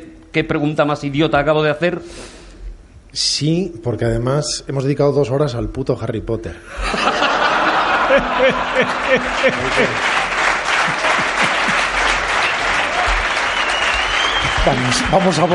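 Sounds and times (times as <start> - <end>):
speech: 0.4 - 2.4, 3.1 - 7.3, 8.1 - 10.1, 14.6 - 15.5
scattered laughs: 6.7 - 12.5
audience applause: 7.0 - 15.5.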